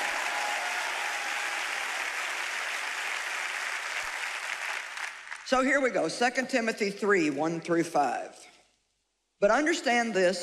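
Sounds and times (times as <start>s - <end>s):
audience clapping: 0.0s - 5.6s
speech: 5.5s - 8.6s, 9.4s - 10.4s.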